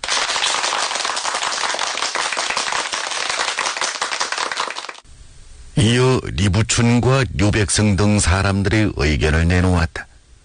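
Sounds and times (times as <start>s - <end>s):
crowd applauding: 0.0s - 5.0s
speech: 5.8s - 10.0s.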